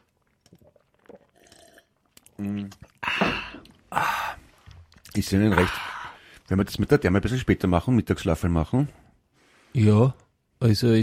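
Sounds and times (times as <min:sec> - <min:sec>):
person drinking water: 0:00.0 - 0:06.5
speech: 0:02.4 - 0:02.9, 0:05.2 - 0:05.9, 0:06.5 - 0:09.0, 0:09.8 - 0:11.0.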